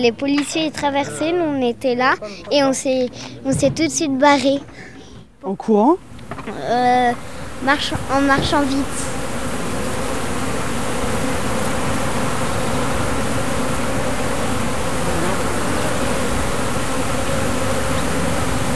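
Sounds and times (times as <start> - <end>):
speech: 0.0 - 9.2
drone buzzing overhead: 6.2 - 18.7.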